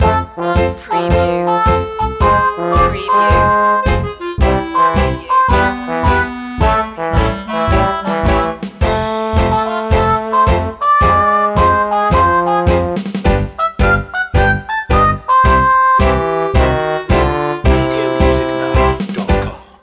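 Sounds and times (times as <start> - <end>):
music loop: 0.0 - 19.6.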